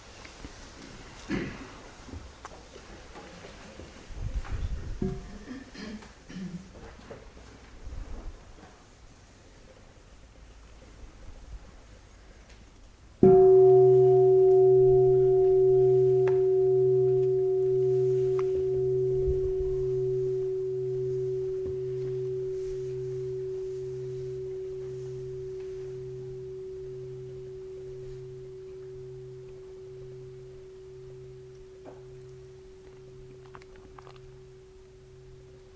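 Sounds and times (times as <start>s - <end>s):
bell ringing: 13.2s - 35.7s.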